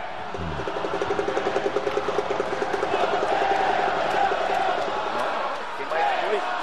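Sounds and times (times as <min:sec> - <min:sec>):
stadium crowd of fans cheering: 0:00.0 - 0:06.6.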